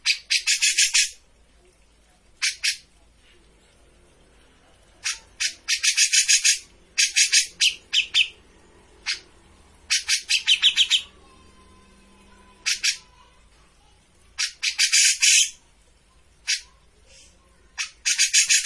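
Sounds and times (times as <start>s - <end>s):
Grey-cheeked bulbul chattering: 0.0s - 1.2s, 2.4s - 2.9s, 5.0s - 11.3s, 12.4s - 13.2s, 14.4s - 15.6s, 17.7s - 18.6s.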